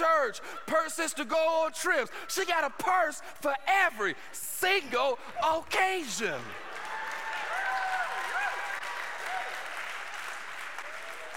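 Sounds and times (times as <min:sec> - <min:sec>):
speech: 0:00.3 - 0:06.6
audience applause: 0:06.3 - 0:11.3.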